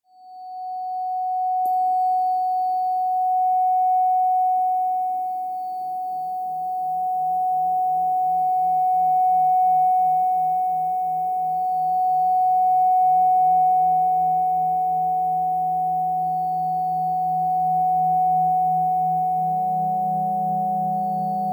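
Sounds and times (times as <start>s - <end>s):
741 Hz cleansing detox tone: 0.0s - 21.5s.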